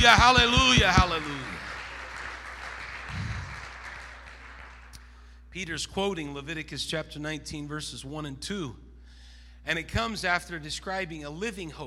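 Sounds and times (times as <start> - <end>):
speech: 0.0 - 1.0, 5.6 - 8.8, 9.6 - 11.8
audience clapping: 0.0 - 5.0.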